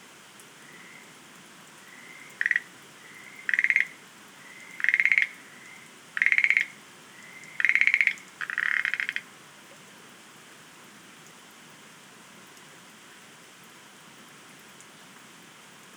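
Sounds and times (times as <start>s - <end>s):
Schlegel's green tree frog rattling pulse trains: 1.9s - 9.2s.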